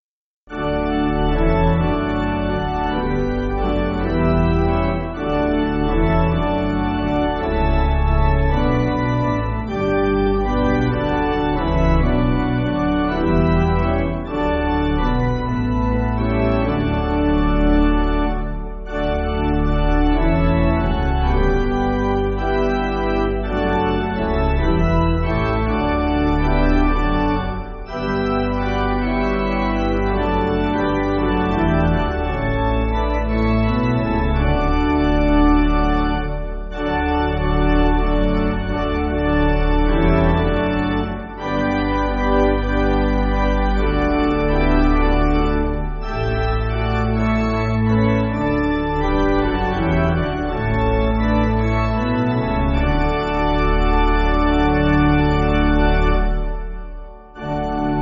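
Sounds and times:
pipe organ church music: 0.5s - 57.9s.

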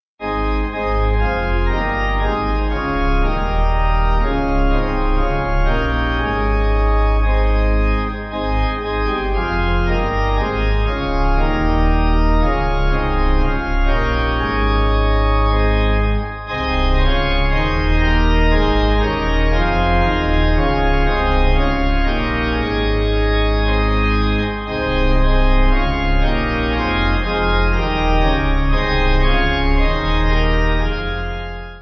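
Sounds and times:
pipe organ hymn backing: 0.2s - 31.8s.

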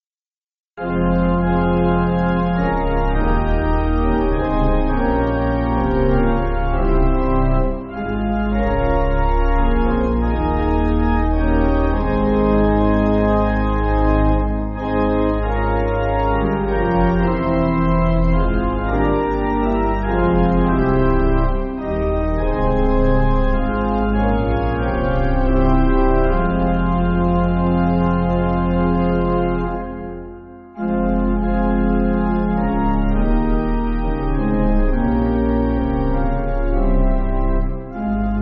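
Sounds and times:
pipe organ backing for churches: 0.8s - 38.3s.

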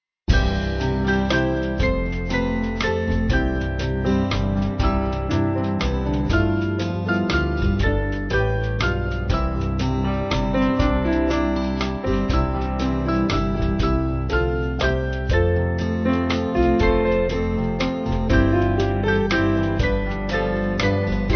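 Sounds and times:
band backing track for churches: 0.3s - 21.3s.

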